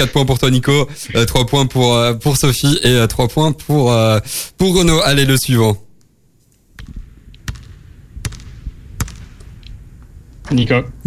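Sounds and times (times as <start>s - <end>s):
speech: 0.0s - 5.8s, 10.5s - 11.0s
basketball bouncing on a hard floor in a quiz game: 6.8s - 9.2s.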